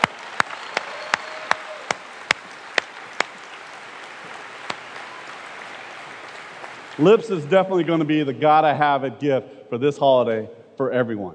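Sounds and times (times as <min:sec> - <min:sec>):
audience applause after a sung performance: 0:00.0 - 0:08.0
speech: 0:07.0 - 0:11.3.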